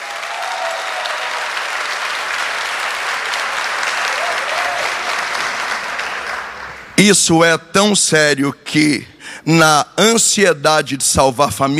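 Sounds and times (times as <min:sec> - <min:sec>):
audience applause: 0:00.0 - 0:07.0
speech: 0:07.0 - 0:11.7.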